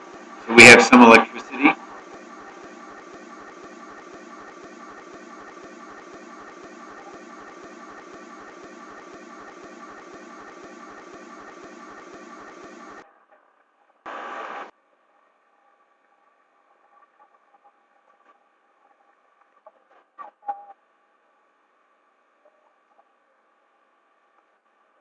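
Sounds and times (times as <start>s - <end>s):
rented electric generator running: 0.0s - 13.0s, 14.1s - 14.7s
speech: 0.5s - 1.7s.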